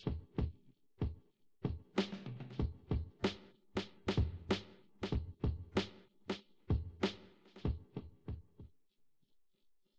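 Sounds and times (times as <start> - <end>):
drums: 0.0 - 8.8.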